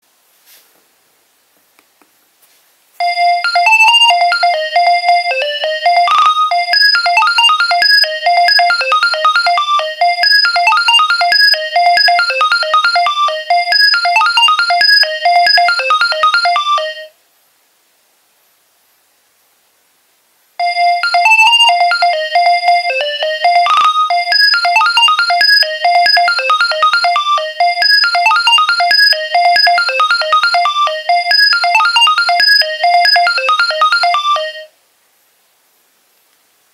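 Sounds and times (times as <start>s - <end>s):
Nokia 2300 ringtones: 3.0s - 17.1s, 20.6s - 34.7s.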